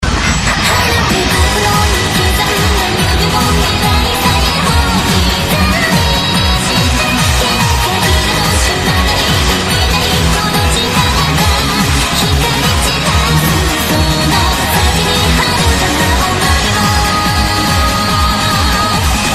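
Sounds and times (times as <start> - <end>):
8-bit music: 0.3 - 19.3.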